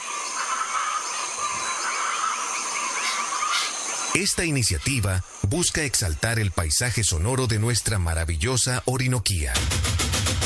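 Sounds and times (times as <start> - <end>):
hoatzin call: 0.0 - 5.3
speech: 4.1 - 10.2.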